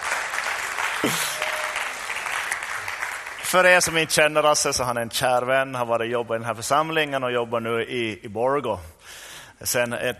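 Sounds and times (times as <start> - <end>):
audience applause: 0.0 - 3.9
speech: 1.0 - 1.3, 3.5 - 10.1.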